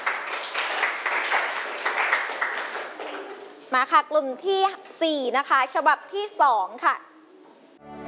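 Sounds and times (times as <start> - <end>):
children clapping: 0.0 - 3.7
speech: 3.7 - 7.1.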